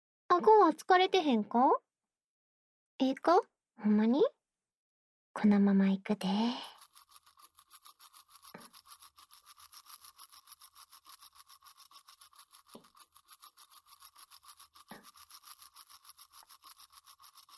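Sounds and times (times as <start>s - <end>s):
speech: 0.4s - 1.8s, 3.0s - 4.4s, 5.4s - 6.8s
toothbrush brushing the backs of teeth: 6.4s - 17.5s.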